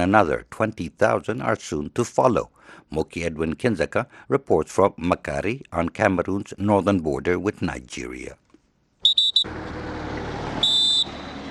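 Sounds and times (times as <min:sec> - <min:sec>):
speech: 0:00.0 - 0:08.4
Cameroon troops blowing whistles to signal departure: 0:09.0 - 0:09.5, 0:10.6 - 0:11.4.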